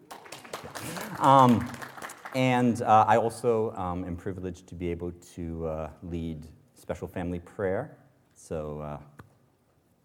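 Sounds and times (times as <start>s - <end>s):
audience applause for the band: 0.0s - 2.5s
speech: 0.6s - 9.1s.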